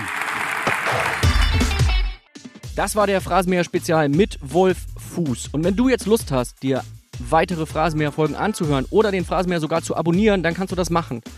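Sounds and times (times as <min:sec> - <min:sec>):
thunderous applause from live crowd: 0:00.0 - 0:02.0
speech: 0:02.8 - 0:11.3.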